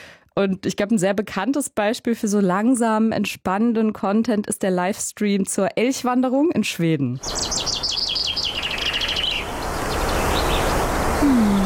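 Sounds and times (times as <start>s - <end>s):
speech: 0.4s - 7.8s
birds singing in forest: 7.2s - 11.6s
wind: 7.2s - 11.6s.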